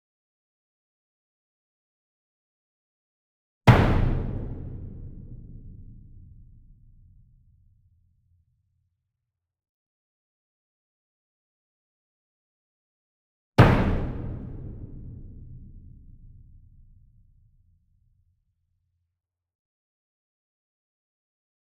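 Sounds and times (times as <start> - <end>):
single 66 inch drum hit with soft medium beater: 3.7 - 7.3, 13.6 - 17.0.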